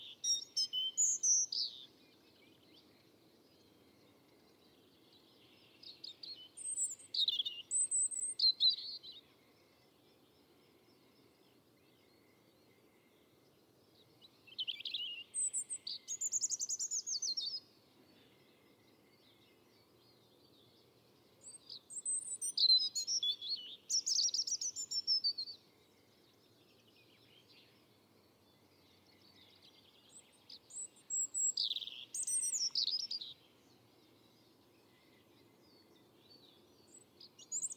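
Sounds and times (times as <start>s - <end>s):
European robin Erithacus rubecula singing: 0.0s - 2.8s, 4.6s - 9.2s, 14.2s - 18.3s, 21.4s - 37.7s.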